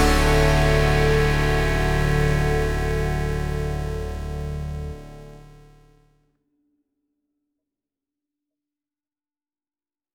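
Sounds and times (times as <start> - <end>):
jingle: 0.0 - 5.6.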